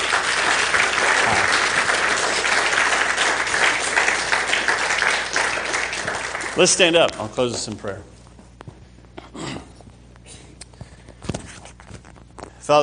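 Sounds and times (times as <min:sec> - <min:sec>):
audience applause: 0:00.0 - 0:07.1
speech: 0:06.6 - 0:08.2.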